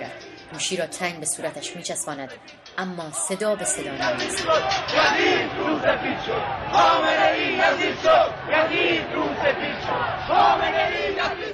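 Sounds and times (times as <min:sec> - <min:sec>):
large protest crowd chanting slogans: 0:00.0 - 0:11.5
speech: 0:00.5 - 0:11.5
constant roar of many people: 0:03.6 - 0:11.5.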